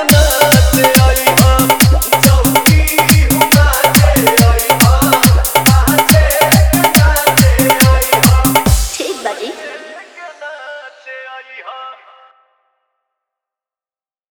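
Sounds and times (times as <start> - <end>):
hard bass music mix: 0.1 - 9.2.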